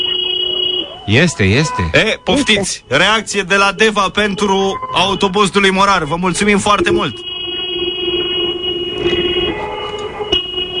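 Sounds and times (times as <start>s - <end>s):
car horns honking: 0.0s - 10.7s
speech: 1.1s - 7.3s.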